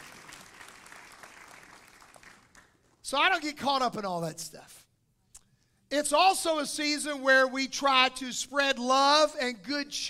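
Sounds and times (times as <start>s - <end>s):
audience applauding: 0.0s - 2.8s
speech: 3.1s - 4.8s, 5.9s - 10.0s.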